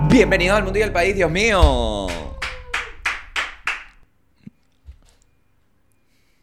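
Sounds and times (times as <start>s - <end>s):
speech: 0.1s - 2.1s
crowd clapping: 1.3s - 4.0s.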